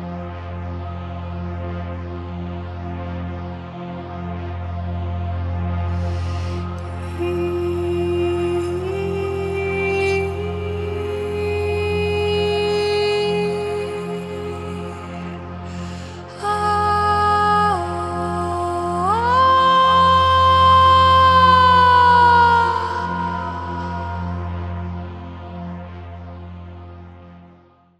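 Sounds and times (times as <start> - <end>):
Anahata chanting: 6.0 - 27.0.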